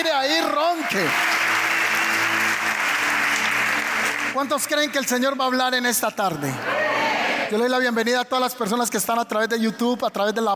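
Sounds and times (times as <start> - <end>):
audience applauding: 0.0 - 5.7
speech: 0.1 - 1.4, 4.4 - 6.9, 7.5 - 10.5.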